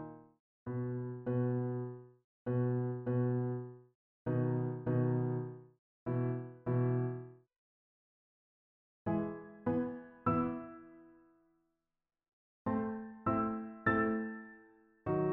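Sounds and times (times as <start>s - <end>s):
solo piano: 0.0s - 7.4s, 9.1s - 11.2s, 12.7s - 15.3s.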